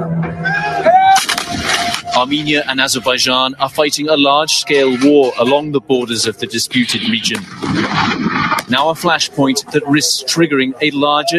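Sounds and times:
artillery bombardment: 1.2 - 2.5, 7.1 - 9.2
speech: 2.2 - 11.3.

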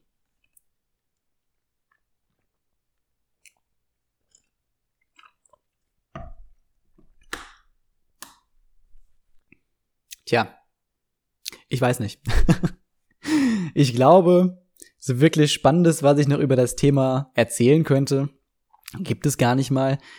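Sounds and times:
someone slurping and swallowing a drink: 3.4 - 5.8
speech: 10.3 - 10.6, 11.7 - 12.8, 13.8 - 20.1
faint mouth clicks: 11.4 - 11.7, 18.7 - 19.1
laughter: 12.3 - 12.8.

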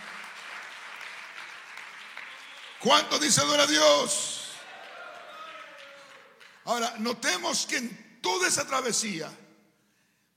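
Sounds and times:
audience applauding: 0.0 - 6.7
speech: 2.8 - 4.3, 6.6 - 9.4.

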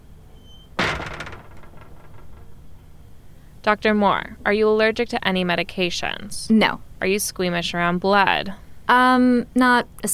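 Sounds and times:
hiss: 0.0 - 10.1
door banging shut: 0.4 - 3.2
speech: 3.6 - 10.1.

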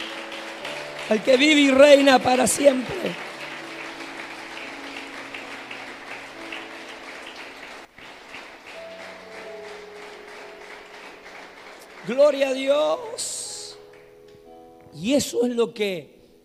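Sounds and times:
audience applause: 0.0 - 13.2
speech: 1.1 - 3.3, 12.1 - 13.4, 15.0 - 16.2.

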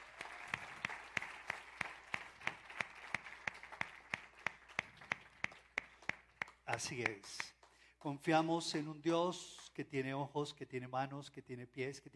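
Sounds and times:
audience applause: 0.0 - 7.5
speech: 6.7 - 12.1.

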